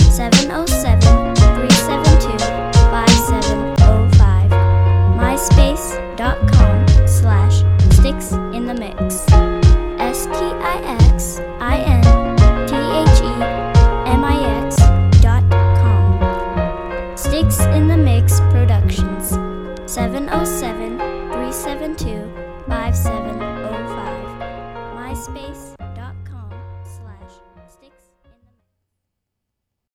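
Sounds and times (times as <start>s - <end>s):
music beat: 0.0s - 20.8s.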